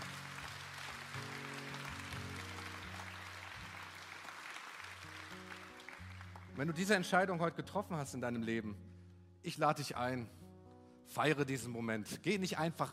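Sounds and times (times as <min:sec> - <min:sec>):
audience applause: 0:00.0 - 0:06.8
speech: 0:06.6 - 0:10.4, 0:11.1 - 0:12.9.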